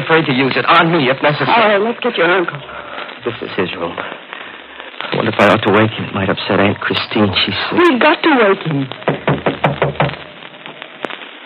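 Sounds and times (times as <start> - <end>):
speech: 0.1 - 4.2, 5.1 - 10.2
knocking on a bedroom door: 9.0 - 10.2.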